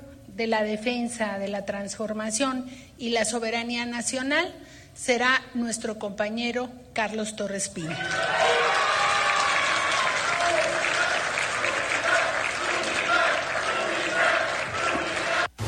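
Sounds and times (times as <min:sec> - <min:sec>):
speech: 0:00.4 - 0:08.6
people shouting: 0:08.0 - 0:15.5
large crowd clapping and cheering: 0:08.0 - 0:15.6.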